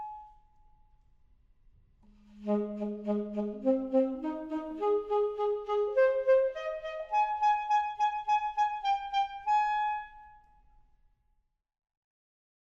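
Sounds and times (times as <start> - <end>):
saxophone playing portato: 2.2 - 10.2.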